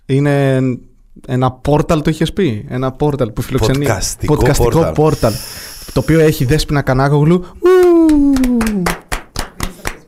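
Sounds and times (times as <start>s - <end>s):
speech: 0.1s - 9.0s
falling whoop-like vocal tone: 7.6s - 8.9s
hands clapping: 7.7s - 10.0s.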